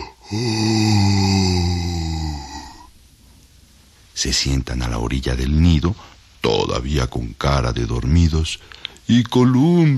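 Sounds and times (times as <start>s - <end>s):
voice imitating a long loud yawn: 0.0s - 2.9s
speech: 0.3s - 0.8s, 4.2s - 9.9s.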